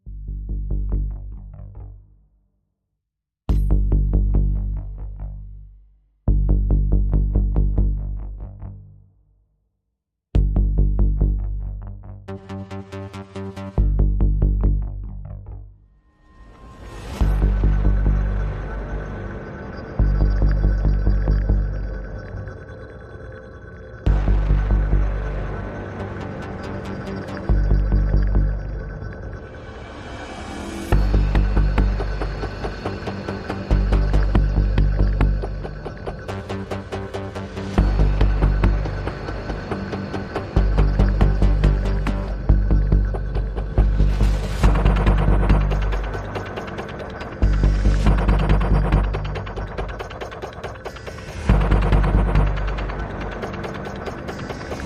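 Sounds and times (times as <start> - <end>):
bass: 0.0 - 2.4, 3.5 - 9.5, 10.3 - 54.8
drums: 16.7 - 18.4, 30.4 - 54.8.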